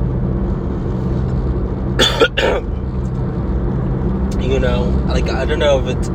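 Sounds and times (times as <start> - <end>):
low rumble like a car engine: 0.0 - 6.1
coughing and throat clearing: 2.0 - 2.8
speech: 4.5 - 6.1.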